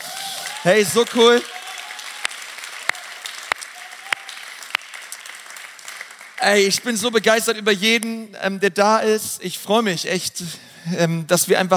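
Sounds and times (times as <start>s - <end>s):
audience applause: 0.0s - 6.7s
speech: 0.6s - 1.6s, 6.4s - 11.7s.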